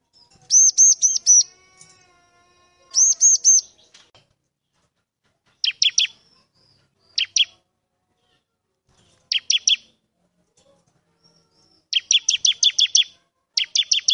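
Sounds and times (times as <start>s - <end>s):
bar-winged prinia singing vigorously: 0.5s - 1.5s, 3.0s - 3.9s, 5.6s - 7.6s, 9.3s - 9.9s, 11.3s - 14.1s.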